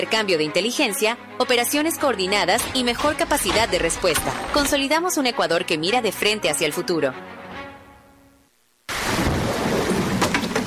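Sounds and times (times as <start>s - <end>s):
speech: 0.0s - 7.4s
rain: 8.6s - 10.6s
thunder: 9.0s - 10.6s.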